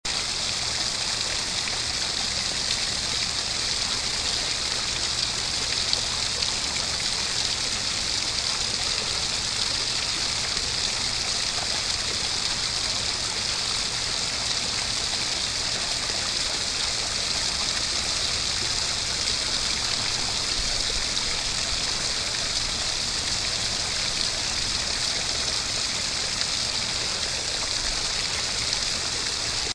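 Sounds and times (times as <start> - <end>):
waterfall: 0.1 - 29.7.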